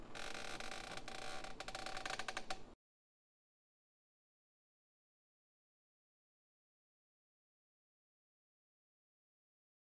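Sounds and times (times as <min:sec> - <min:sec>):
creepy rocking chair in a haunted house: 0:00.1 - 0:02.6.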